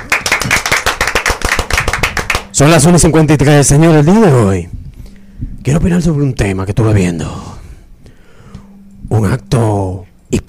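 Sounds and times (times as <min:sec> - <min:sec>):
applause, hands clapping: 0:00.0 - 0:02.6
speech: 0:02.6 - 0:04.8, 0:05.6 - 0:07.5, 0:09.1 - 0:10.4.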